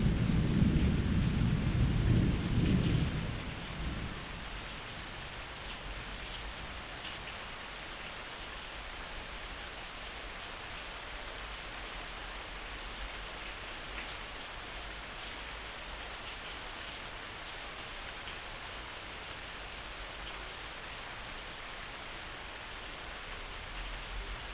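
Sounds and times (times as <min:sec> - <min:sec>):
thunder: 0:00.0 - 0:04.5
rain: 0:00.0 - 0:24.5.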